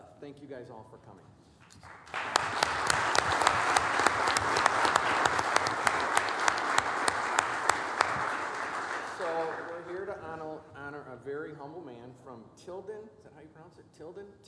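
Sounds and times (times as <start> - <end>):
speech: 0.2 - 2.8, 11.6 - 14.4
audience applause: 1.8 - 10.2.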